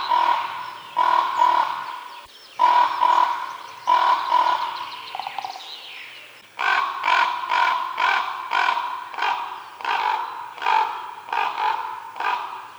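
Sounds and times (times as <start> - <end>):
common raven rough throaty calls: 0.0 - 5.6, 6.6 - 12.7.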